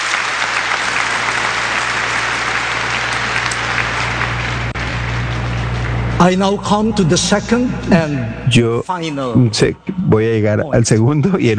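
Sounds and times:
audience applause: 0.0s - 6.5s
speech: 6.2s - 11.5s.

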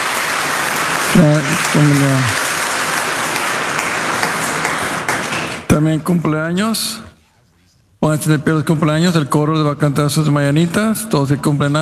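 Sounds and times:
audience applause: 0.0s - 5.7s
speech: 1.2s - 2.4s, 5.7s - 7.1s, 8.0s - 11.7s.

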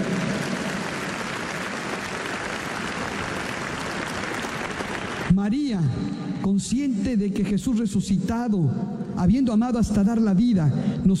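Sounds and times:
audience applause: 0.0s - 5.4s
speech: 5.3s - 11.1s.

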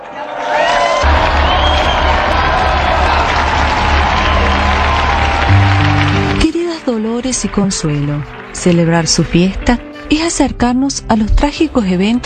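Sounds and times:
crowd cheering: 0.0s - 9.8s
warm applause from audience: 0.0s - 9.8s
speech: 7.3s - 12.2s.

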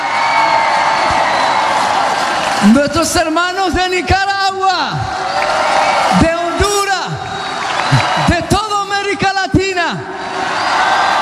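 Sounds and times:
audience applause: 0.0s - 3.6s, 5.0s - 9.1s, 10.2s - 11.1s
audience cheering: 0.0s - 11.1s
speech: 2.6s - 6.4s.

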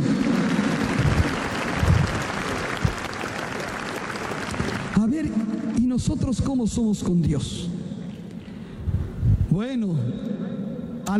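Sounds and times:
audience applauding: 0.0s - 5.6s
speech: 6.0s - 7.7s, 9.6s - 10.4s.

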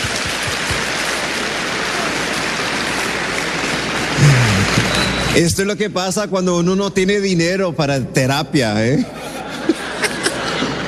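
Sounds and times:
audience applause: 0.0s - 5.8s
speech: 5.3s - 9.4s
laughter: 8.9s - 10.8s.

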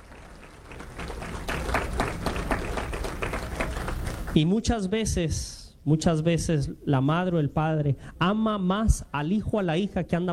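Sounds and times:
audience applause: 0.0s - 4.4s
speech: 4.4s - 10.3s.

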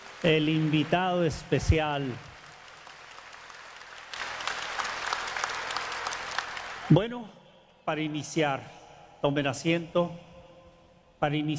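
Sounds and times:
audience applause: 0.0s - 7.0s
speech: 0.2s - 2.3s, 6.9s - 10.3s, 11.2s - 11.5s.

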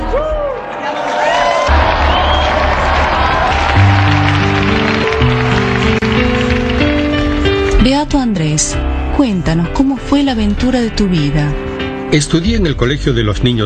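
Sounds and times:
cheering: 0.0s - 7.1s
applause for beatified martyrs: 0.0s - 7.8s
low sustained musical tones: 1.7s - 13.6s
speech: 8.4s - 13.6s.

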